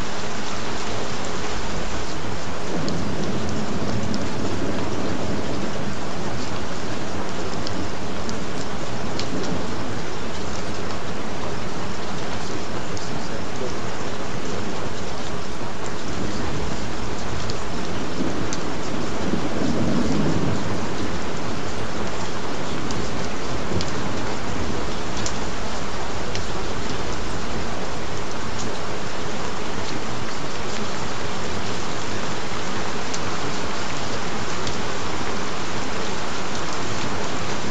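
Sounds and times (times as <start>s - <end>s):
gentle rain: 0.0s - 37.6s
thunder: 2.6s - 10.1s, 16.1s - 25.3s.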